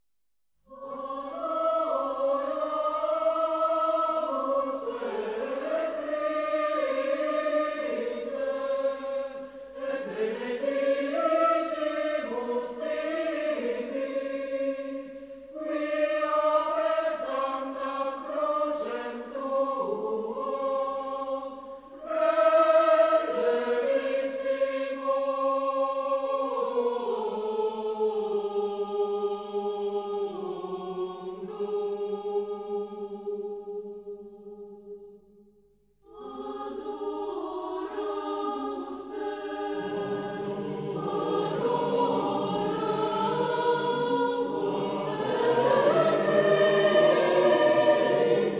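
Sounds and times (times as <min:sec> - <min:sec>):
Gregorian polyphony for chorus, largo espressivo: 0:00.7 - 0:35.2, 0:36.0 - 0:48.5.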